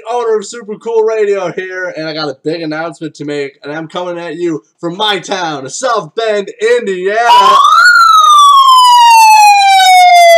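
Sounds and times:
speech: 0.1s - 7.8s
alarm siren effect tone gliding downward: 7.3s - 10.3s.

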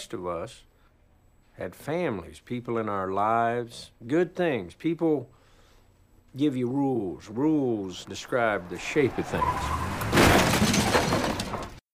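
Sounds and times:
speech: 0.0s - 0.7s, 1.6s - 5.4s, 6.3s - 9.8s
car tires screeching: 7.6s - 11.7s.

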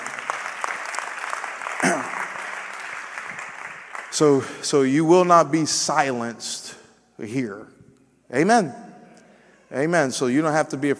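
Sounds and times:
people clapping their hands: 0.0s - 5.4s
speech: 4.2s - 8.8s, 9.7s - 10.9s.

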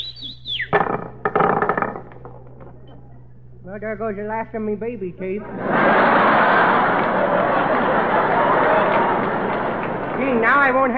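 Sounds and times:
person whistling to call someone: 0.0s - 0.7s
speech: 3.7s - 7.5s, 10.2s - 10.9s
laughter: 5.4s - 10.7s.

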